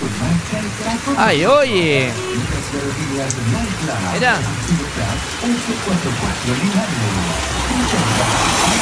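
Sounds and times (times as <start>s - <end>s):
rain falling in Cauquenes, recorded on a video: 0.0s - 8.8s
speech: 0.4s - 8.8s.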